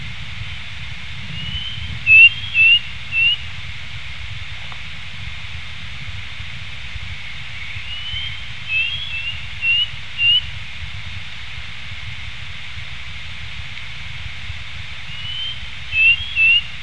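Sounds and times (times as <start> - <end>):
low rumble: 0.0 - 16.8
bird whistling: 1.4 - 3.4, 7.7 - 10.4, 15.1 - 16.8.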